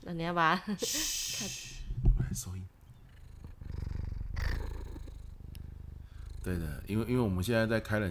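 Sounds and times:
speech: 0:00.1 - 0:01.7, 0:06.5 - 0:08.0
cat purring: 0:02.2 - 0:08.0.

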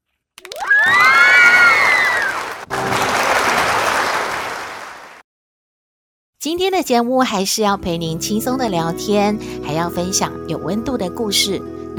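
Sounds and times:
applause and cheering: 0:00.4 - 0:05.2
speech: 0:06.4 - 0:11.9.

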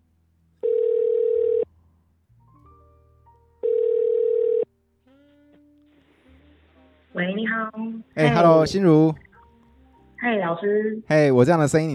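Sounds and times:
faint low hum: 0:00.0 - 0:11.9
telephone ringing: 0:00.6 - 0:01.7, 0:03.6 - 0:04.7
speech: 0:07.2 - 0:09.2, 0:10.2 - 0:11.9.

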